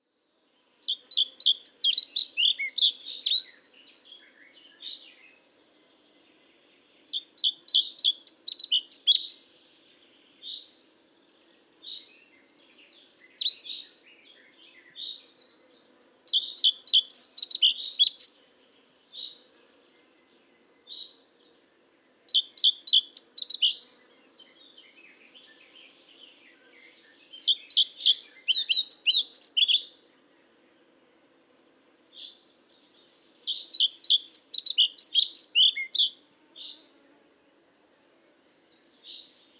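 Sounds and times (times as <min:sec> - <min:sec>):
Ficedula hypoleuca calling: 0:00.6 - 0:03.7, 0:07.0 - 0:09.7, 0:16.0 - 0:18.4, 0:22.1 - 0:23.9, 0:27.2 - 0:29.9, 0:33.4 - 0:36.8.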